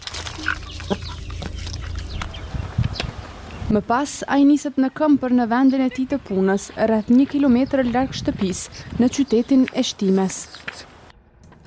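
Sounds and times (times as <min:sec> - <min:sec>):
backyard flock of chickens clucking while being fed: 0:00.1 - 0:03.6
speech: 0:00.4 - 0:01.0, 0:03.7 - 0:10.9.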